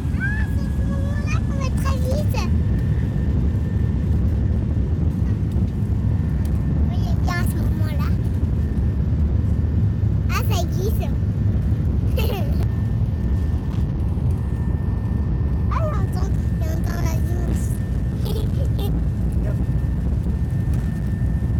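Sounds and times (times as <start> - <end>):
voices speaking: 0.0 - 2.6, 6.9 - 8.2, 10.3 - 11.2, 15.7 - 19.6
airplane taking off: 0.0 - 21.5.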